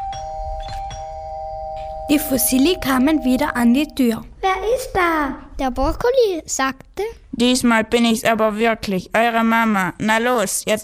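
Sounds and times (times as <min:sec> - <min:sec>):
doorbell ringing at front door: 0:00.0 - 0:04.2
speech: 0:02.1 - 0:10.8.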